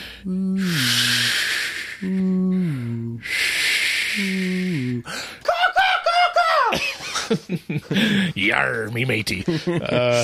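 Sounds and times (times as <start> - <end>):
speech: 0.2 - 0.6, 7.3 - 10.2
voice imitating soothing ocean waves: 0.2 - 3.3, 4.0 - 5.0
laughter: 5.5 - 8.5, 9.3 - 10.2.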